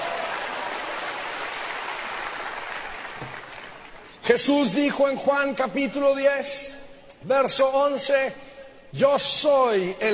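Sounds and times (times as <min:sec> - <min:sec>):
audience applause: 0:00.0 - 0:04.2
speech: 0:04.3 - 0:10.1.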